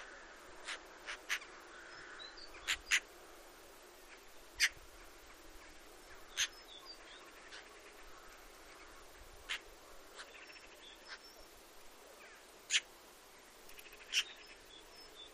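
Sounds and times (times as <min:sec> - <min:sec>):
Eurasian magpie harsh calls and rattling chatter: 0:00.6 - 0:03.1, 0:04.6 - 0:04.8, 0:06.2 - 0:06.7, 0:09.4 - 0:11.2, 0:12.7 - 0:12.9, 0:13.8 - 0:14.4.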